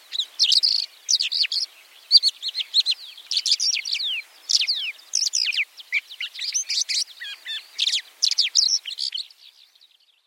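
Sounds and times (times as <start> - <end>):
White-winged lark twittering calls: 0.0 - 10.2.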